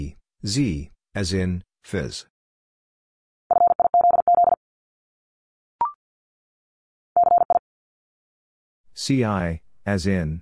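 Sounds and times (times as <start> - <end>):
speech: 0.0 - 2.3, 9.0 - 10.4
Morse code tones at 50 wpm: 3.5 - 4.6, 7.2 - 7.6.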